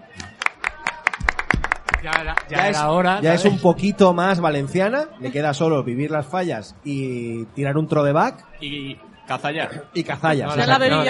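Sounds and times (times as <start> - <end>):
murmur of voices: 0.0 - 11.0
hand claps from a small group: 0.1 - 2.8
speech: 2.0 - 11.0.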